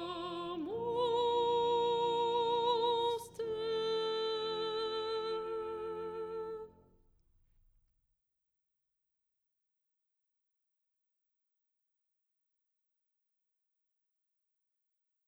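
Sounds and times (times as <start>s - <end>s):
soprano singing: 0.0s - 6.9s.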